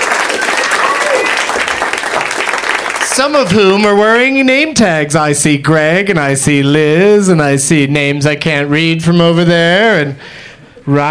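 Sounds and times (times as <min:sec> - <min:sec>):
live audience clapping at the UCB Theater in Los Angeles: 0:00.0 - 0:03.9
speech: 0:03.2 - 0:11.0.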